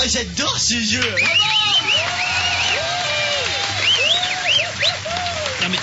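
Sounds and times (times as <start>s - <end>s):
speech: 0.1s - 1.6s
audience applauding and cheering: 1.1s - 5.8s.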